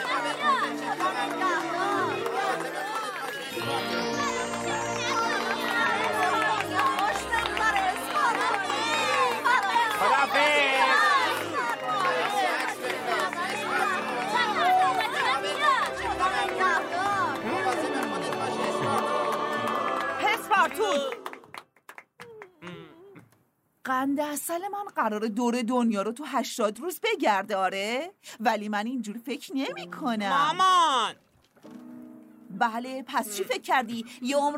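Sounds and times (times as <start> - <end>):
crowd cheering: 0.0 - 21.6
applause: 0.0 - 22.6
speech: 24.4 - 31.2, 32.6 - 34.5.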